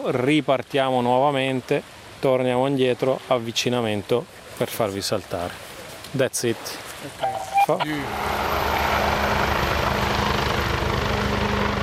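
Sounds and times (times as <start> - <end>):
speech: 0.0 - 9.1
helicopter: 7.9 - 11.8.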